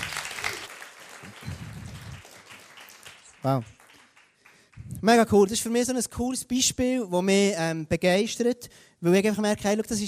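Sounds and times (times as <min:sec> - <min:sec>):
audience applause: 0:00.0 - 0:05.0
speech: 0:03.4 - 0:03.8, 0:05.0 - 0:10.0.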